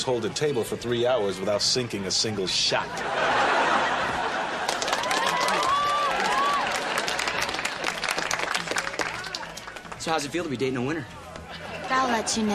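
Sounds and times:
speech: 0.0 - 4.0, 10.0 - 11.2, 11.9 - 12.5
laughter: 2.6 - 8.9, 11.5 - 12.5
crowd cheering and applauding: 4.4 - 10.4.

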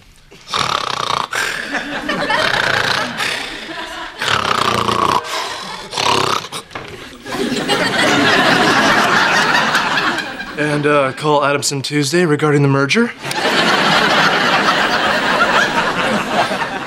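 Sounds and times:
person snoring loudly: 0.4 - 6.7
laughter: 1.4 - 6.0, 6.7 - 11.5, 13.2 - 16.8
speech: 10.8 - 13.4.

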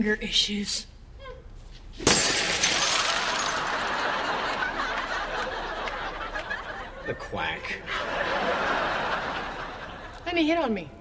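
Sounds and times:
speech: 0.0 - 0.9, 7.1 - 8.2, 10.3 - 10.9
car being smashed up with breaking glass: 2.0 - 4.2
laughter: 3.1 - 10.3.

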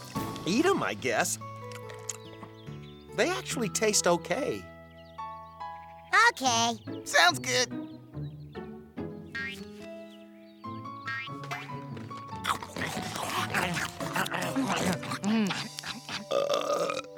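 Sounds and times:
speech: 0.5 - 1.5, 3.2 - 4.7, 6.4 - 7.8, 14.7 - 15.7
burp: 12.4 - 17.1.

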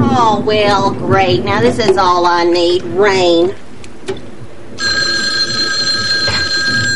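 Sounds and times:
speech: 0.2 - 4.2
telephone bell ringing: 4.8 - 6.9.

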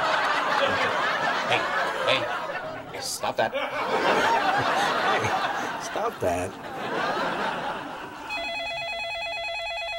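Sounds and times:
laughter: 0.0 - 8.4
speech: 1.5 - 2.4, 3.2 - 7.7
telephone ringing: 8.3 - 9.9.

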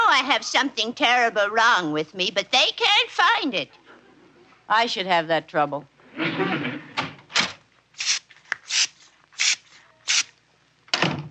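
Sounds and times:
speech: 0.2 - 3.8, 4.7 - 6.8
nurse spraying air freshener: 8.0 - 10.3.

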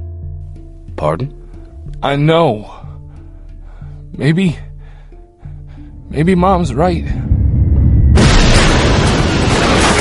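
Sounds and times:
speech: 1.0 - 2.8, 4.1 - 4.7, 6.1 - 7.2
deep rumbling: 4.9 - 9.9
roaring wash of flying bricks and debris: 8.1 - 9.9
wall bursting apart with a loud crash: 8.2 - 9.9.

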